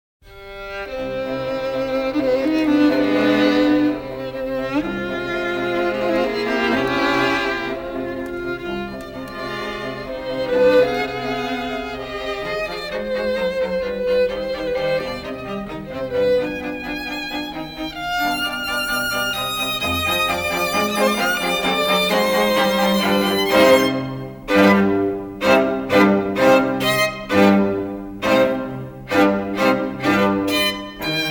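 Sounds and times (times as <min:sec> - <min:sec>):
classical strings: 0:00.2 - 0:31.3.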